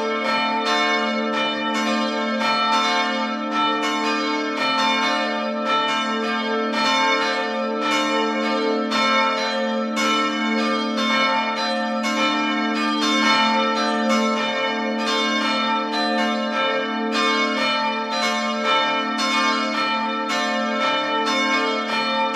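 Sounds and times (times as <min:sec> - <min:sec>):
church bells ringing: 0:00.0 - 0:22.3.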